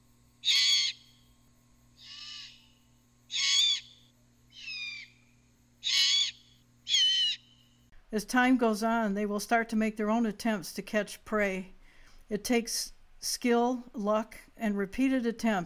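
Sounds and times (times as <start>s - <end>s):
fledgling birds giving food-begging screeches: 0.4s - 1.1s, 2.0s - 7.7s
speech: 8.1s - 15.6s.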